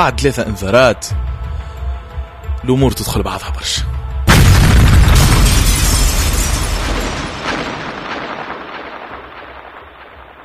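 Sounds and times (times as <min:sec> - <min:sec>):
speech: 0:00.0 - 0:01.3, 0:02.6 - 0:04.0
explosion with rumbling decay: 0:04.3 - 0:10.4.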